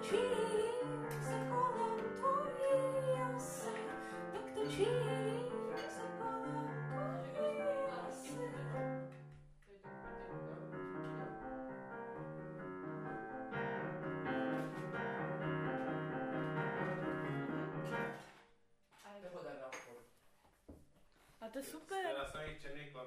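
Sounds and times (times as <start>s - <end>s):
piano: 0.0s - 18.4s.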